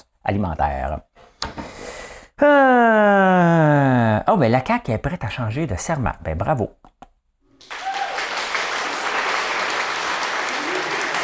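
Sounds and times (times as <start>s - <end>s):
speech: 0.2s - 1.1s, 2.4s - 6.9s
applause: 7.6s - 11.2s.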